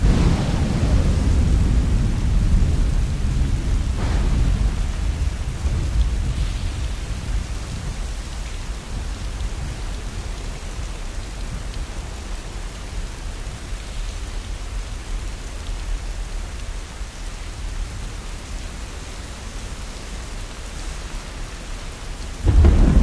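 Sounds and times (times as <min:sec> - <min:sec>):
rain: 0:00.0 - 0:23.0.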